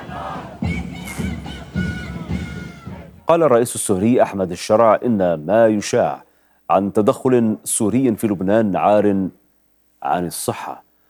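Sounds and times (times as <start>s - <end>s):
protest crowd chanting slogans: 0.0s - 3.3s
speech: 3.3s - 9.4s, 10.0s - 10.8s.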